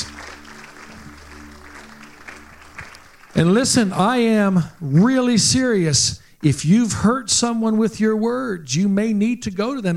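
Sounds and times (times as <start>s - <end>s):
audience clapping: 0.0s - 4.7s
speech: 3.4s - 9.9s.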